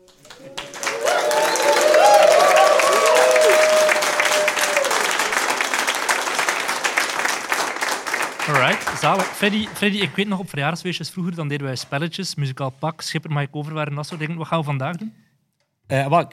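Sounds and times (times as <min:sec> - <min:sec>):
audience applause: 0:00.0 - 0:10.5
speech: 0:09.0 - 0:15.2, 0:15.9 - 0:16.3.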